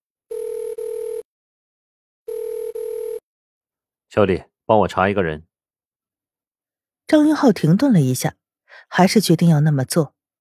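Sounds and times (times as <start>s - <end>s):
outgoing-call telephone ringback tone: 0.3s - 1.2s, 2.3s - 3.2s
speech: 4.1s - 5.5s, 7.1s - 10.2s.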